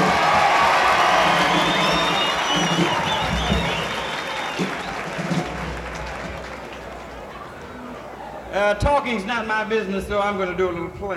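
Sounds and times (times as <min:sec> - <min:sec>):
audience applause: 0:00.0 - 0:08.3
speech: 0:08.7 - 0:11.1.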